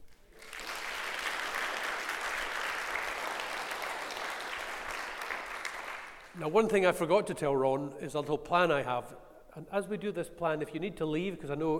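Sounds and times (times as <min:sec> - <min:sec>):
audience applause: 0:00.0 - 0:06.4
speech: 0:06.4 - 0:11.7.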